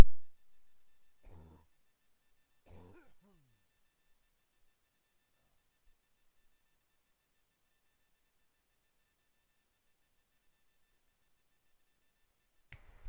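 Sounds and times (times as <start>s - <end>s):
throat clearing: 1.2s - 1.7s, 2.6s - 3.5s.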